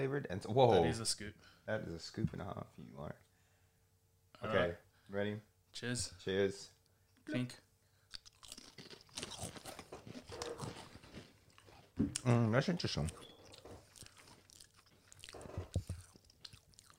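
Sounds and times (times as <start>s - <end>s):
speech: 0.0s - 3.3s, 4.4s - 7.6s, 12.0s - 13.3s
barbecue Shapes crackers being crunched and chewed: 8.1s - 16.9s.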